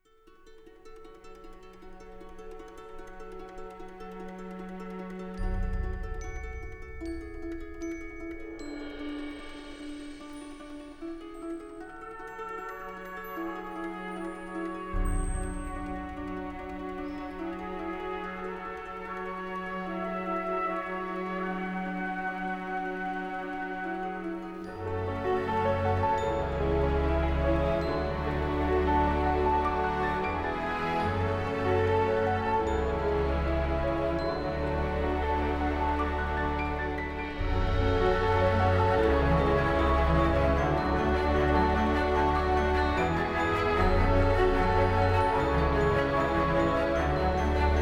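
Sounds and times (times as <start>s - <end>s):
orchestra: 0.0s - 47.7s.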